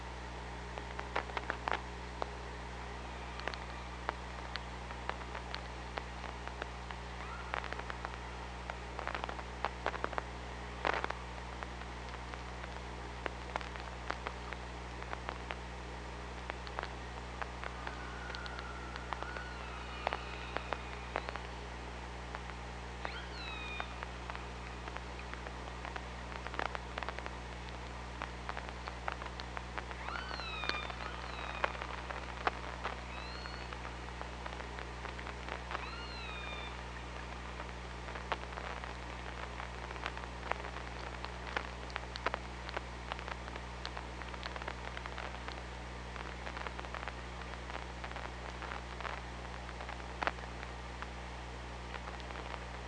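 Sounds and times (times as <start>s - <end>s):
low underwater hum: 0.0s - 52.8s
Killer whale calls: 7.2s - 8.1s, 17.6s - 21.5s, 23.0s - 24.1s, 29.9s - 33.8s, 35.7s - 37.2s.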